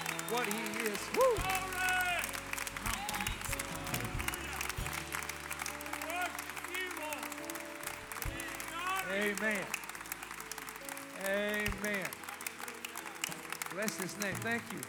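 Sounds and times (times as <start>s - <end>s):
audience clapping in praise: 0.0s - 14.8s
speech: 0.3s - 2.0s, 9.1s - 9.8s, 11.3s - 12.2s, 13.8s - 14.8s.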